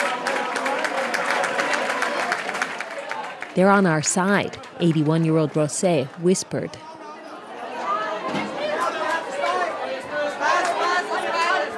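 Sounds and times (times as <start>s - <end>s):
people applauding indoors: 0.0s - 6.8s, 8.8s - 11.7s
speech: 3.6s - 6.9s.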